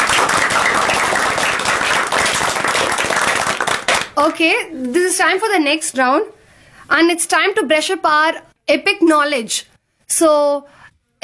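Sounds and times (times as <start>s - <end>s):
audience applause: 0.0s - 4.5s
speech: 4.2s - 11.2s.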